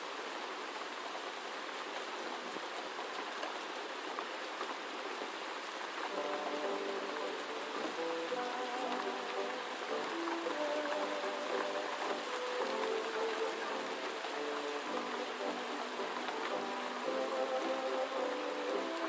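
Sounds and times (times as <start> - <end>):
dense night rain: 0.0 - 19.0
muffled oldies music in another room: 5.9 - 19.0.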